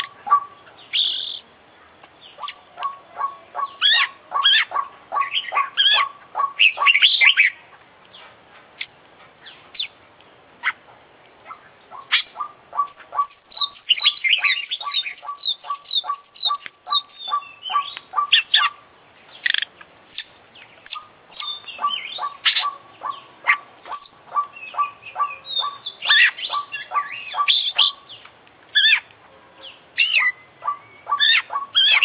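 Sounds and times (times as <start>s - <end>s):
Oriental magpie-robin singing: 0.0s - 7.8s, 11.5s - 32.0s.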